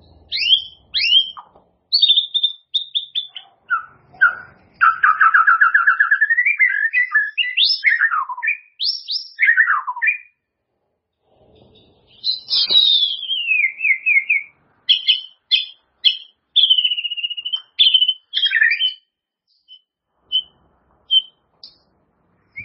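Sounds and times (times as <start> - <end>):
White-rumped shama song of whistles and warbled phrases: 0.0 - 10.5, 11.6 - 21.9, 22.5 - 22.6.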